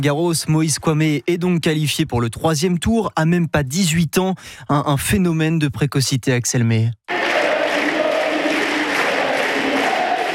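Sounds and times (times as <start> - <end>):
speech: 0.0 - 7.1
Roland-Garros tennis crowd chanting a player's first name: 7.1 - 10.3.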